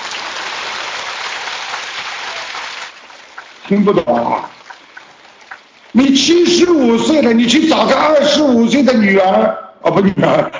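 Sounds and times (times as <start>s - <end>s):
audience applause: 0.0s - 7.0s
speech: 3.7s - 4.6s, 6.1s - 10.5s.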